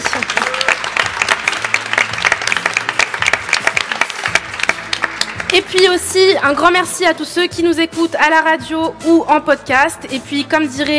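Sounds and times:
audience applause: 0:00.0 - 0:05.5
speech: 0:05.6 - 0:10.9.

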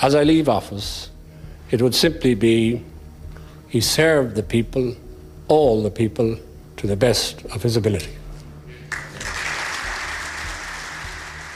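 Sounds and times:
speech: 0:00.0 - 0:01.1, 0:01.7 - 0:02.9, 0:03.7 - 0:08.2
parliament applause: 0:08.9 - 0:11.5.

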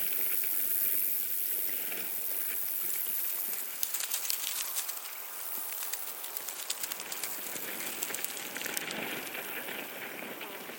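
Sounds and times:
bright crackling hiss at Badbury Rings in Dorset in summer: 0:00.0 - 0:10.7
sharper bursts of clicks: 0:03.4 - 0:09.5.

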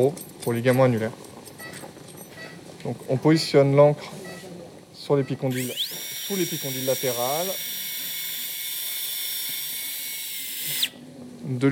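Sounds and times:
speech: 0:00.0 - 0:01.3, 0:02.8 - 0:04.2, 0:05.0 - 0:07.7, 0:11.5 - 0:11.7
surgical drill boring anchor hole in humerus: 0:05.5 - 0:11.0.

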